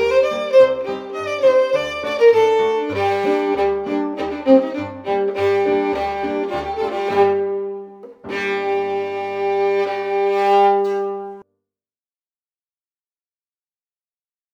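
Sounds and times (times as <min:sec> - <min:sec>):
fiddle: 0:00.0 - 0:11.4
piano: 0:00.0 - 0:11.4.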